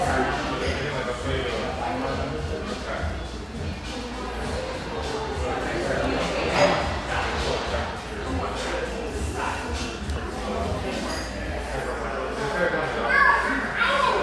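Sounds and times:
murmur of voices in a coffeehouse in coastal California: 0.0 - 14.2.

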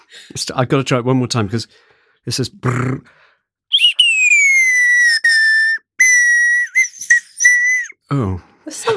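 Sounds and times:
speech: 0.1 - 3.2, 8.1 - 8.9
person whistling in imitation of a nightingale: 3.7 - 8.0.

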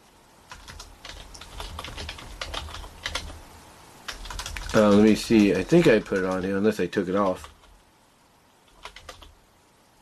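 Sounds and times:
fingers typing on a computer keyboard: 0.5 - 3.4, 4.1 - 6.6, 7.2 - 7.8, 8.6 - 9.4
speech: 4.8 - 7.5.

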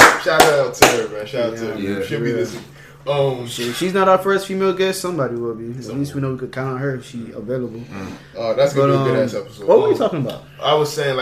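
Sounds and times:
hand claps: 0.0 - 1.3
speech: 0.3 - 11.2.

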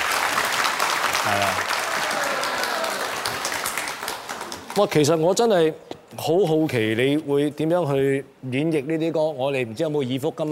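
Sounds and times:
audience applause welcoming a singer: 0.0 - 5.1
speech: 1.2 - 2.3, 4.8 - 10.5.

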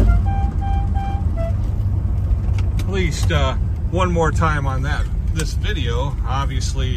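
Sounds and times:
musical car horn honking: 0.0 - 1.8
speech: 3.0 - 6.9.

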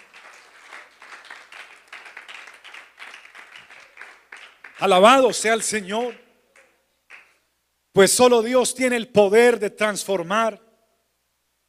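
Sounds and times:
audience applauding: 0.0 - 7.3
speech: 4.8 - 6.2, 8.0 - 10.6.

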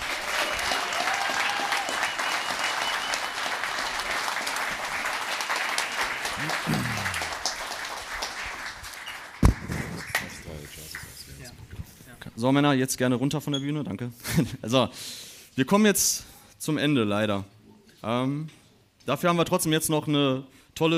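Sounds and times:
audience applause: 0.0 - 11.4
laughter: 6.3 - 7.6
speech: 12.4 - 20.9.

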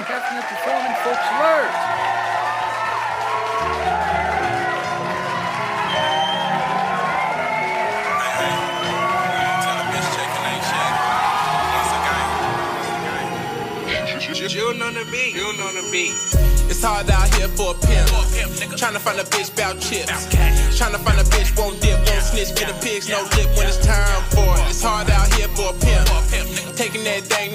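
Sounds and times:
whoops and shouts: 0.0 - 14.2
live audience applauding musical guests: 0.0 - 14.3
speech: 0.4 - 2.2, 14.5 - 27.5.

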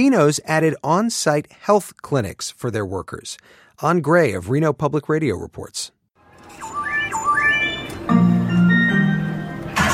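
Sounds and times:
speech: 0.0 - 6.0
casino slot machines beeping and chiming: 6.2 - 9.9.

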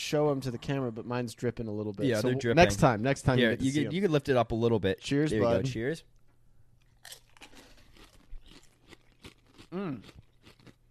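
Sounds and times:
low steady hum: 0.0 - 8.6
speech: 0.1 - 6.2, 9.7 - 10.2
tortilla chips being chewed: 6.8 - 10.8.

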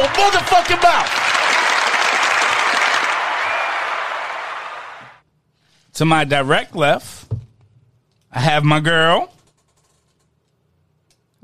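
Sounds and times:
crowd cheering and applauding: 0.0 - 5.2
speech: 0.2 - 1.2, 6.0 - 7.4, 8.3 - 9.4.

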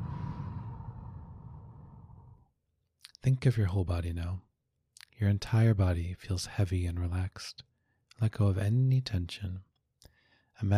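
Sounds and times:
slow breathing in and out during a relaxation exercise: 0.0 - 2.5, 10.0 - 10.6
speech: 3.2 - 4.5, 5.2 - 9.7, 10.6 - 10.7.

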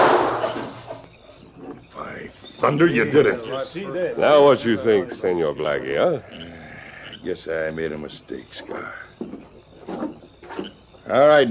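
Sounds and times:
gunshot: 0.0 - 0.9
speech: 2.6 - 6.6, 7.2 - 9.5, 11.1 - 11.4.

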